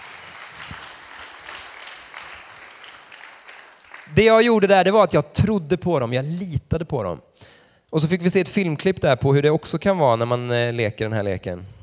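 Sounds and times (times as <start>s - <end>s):
audience applause: 0.0s - 4.3s
speech: 4.1s - 11.8s.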